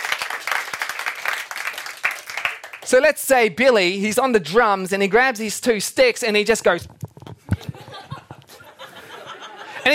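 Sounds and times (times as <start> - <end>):
audience applause for the drummer: 0.0 - 2.9
speech: 2.9 - 7.0
laughter: 7.4 - 9.9.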